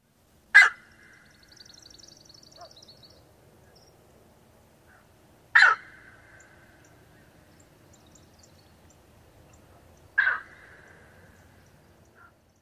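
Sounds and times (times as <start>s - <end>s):
bird skow calls in flight: 0.6s - 2.9s, 4.9s - 6.6s, 10.2s - 11.4s.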